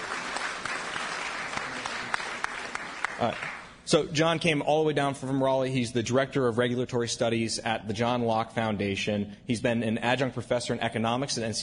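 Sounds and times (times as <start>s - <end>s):
applause: 0.0s - 3.8s
speech: 3.2s - 11.6s.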